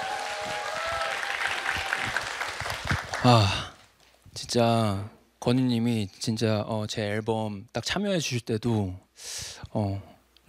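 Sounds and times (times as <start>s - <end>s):
audience applause: 0.0s - 3.7s
speech: 3.2s - 3.6s, 4.4s - 10.4s.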